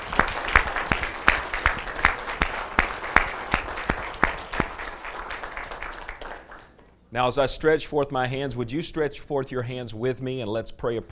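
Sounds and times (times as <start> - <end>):
audience applauding: 0.0 - 6.8
speech: 7.1 - 11.1.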